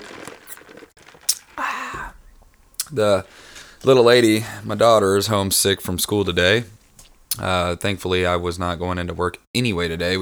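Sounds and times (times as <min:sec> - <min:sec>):
person sipping and gulping Dr Pepper soda: 0:00.0 - 0:04.8
speech: 0:02.9 - 0:06.8, 0:07.4 - 0:10.2.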